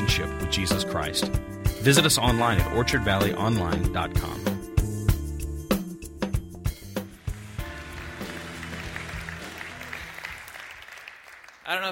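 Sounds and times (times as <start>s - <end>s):
music with sharp percussive hits: 0.0s - 10.0s
speech: 0.2s - 4.6s
audience applause: 7.0s - 11.8s.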